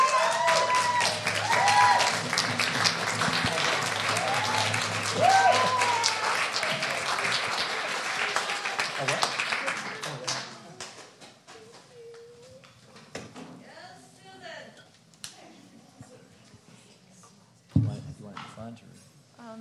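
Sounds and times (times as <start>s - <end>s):
audience applause welcoming a speaker: 0.0s - 11.2s.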